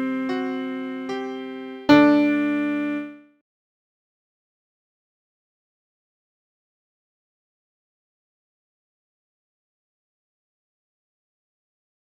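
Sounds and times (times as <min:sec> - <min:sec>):
piano: 0:00.0 - 0:03.4.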